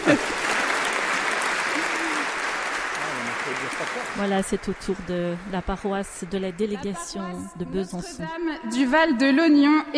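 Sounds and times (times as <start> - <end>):
audience applause: 0.0 - 6.7
speech: 0.1 - 0.4, 3.6 - 9.9.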